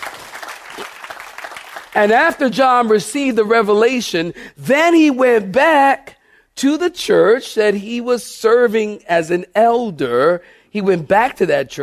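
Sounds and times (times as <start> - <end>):
audience clapping hands: 0.0 - 3.0
speech: 2.0 - 11.8.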